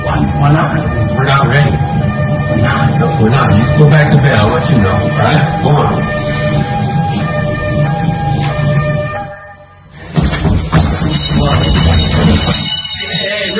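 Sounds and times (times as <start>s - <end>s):
alarm: 0.0s - 13.5s
speech: 3.4s - 6.2s.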